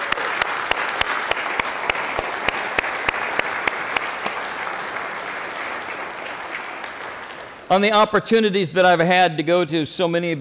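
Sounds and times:
audience applause: 0:00.0 - 0:08.0
speech: 0:07.7 - 0:10.3.

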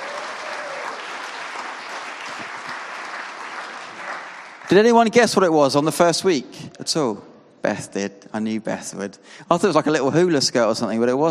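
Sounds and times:
audience round of applause: 0:00.0 - 0:04.9
speech: 0:04.7 - 0:11.3.

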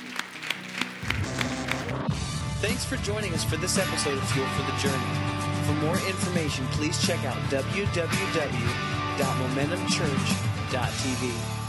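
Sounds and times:
audience applause: 0:00.0 - 0:02.0
speech: 0:02.7 - 0:11.6.

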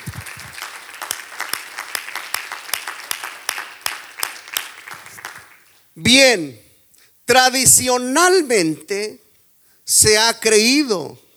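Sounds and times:
audience applause: 0:00.0 - 0:05.8
speech: 0:06.0 - 0:06.6, 0:07.3 - 0:09.2, 0:09.9 - 0:11.2.

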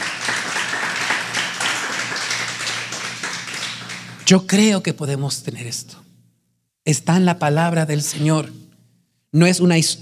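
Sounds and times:
audience applause: 0:00.0 - 0:04.3
speech: 0:04.3 - 0:06.1, 0:06.9 - 0:08.6, 0:09.3 - 0:09.9.

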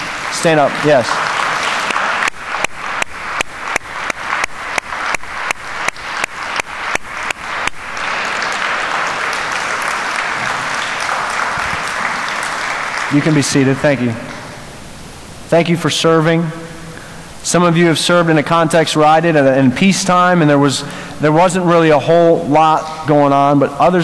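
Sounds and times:
audience applause for military veterans: 0:00.0 - 0:14.5
speech: 0:00.4 - 0:01.2, 0:13.1 - 0:14.3, 0:15.5 - 0:16.6, 0:17.4 - 0:24.0.

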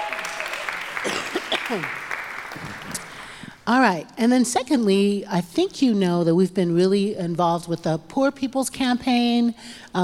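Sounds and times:
audience applause: 0:00.0 - 0:03.4
speech: 0:01.7 - 0:02.0, 0:02.6 - 0:03.0, 0:03.7 - 0:10.0.

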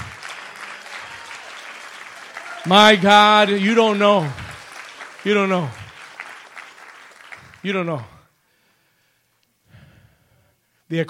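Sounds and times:
applause: 0:00.0 - 0:08.2
speech: 0:02.6 - 0:04.4, 0:05.2 - 0:05.8, 0:07.6 - 0:08.1.

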